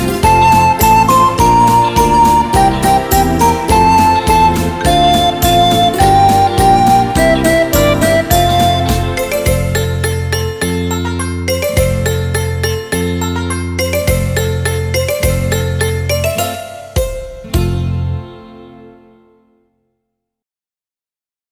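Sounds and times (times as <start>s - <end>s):
recorder playing a German children's song: 0.0s - 17.4s.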